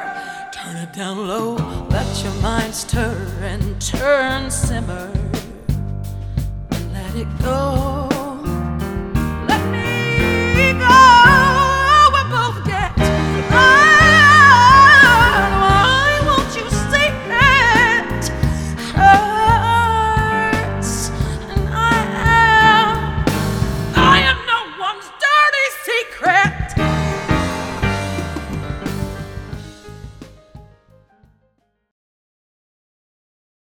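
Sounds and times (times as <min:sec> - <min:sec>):
rock funk music: 0:01.5 - 0:24.5, 0:26.6 - 0:31.0.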